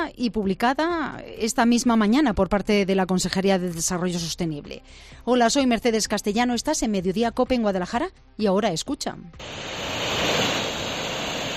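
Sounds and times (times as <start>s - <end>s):
speech: 0.0s - 10.5s
swollen Henares river flowing through Guadalajara: 9.4s - 11.5s.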